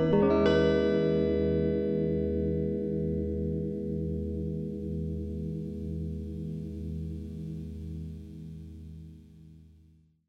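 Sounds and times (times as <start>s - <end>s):
guitar string: 0.0s - 7.8s.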